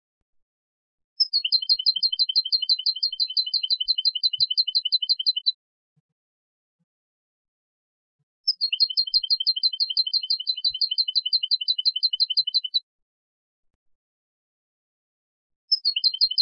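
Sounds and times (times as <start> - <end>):
European goldfinch Carduelis carduelis rapid bright chirps: 1.2 - 5.6, 8.5 - 12.8, 15.7 - 16.4.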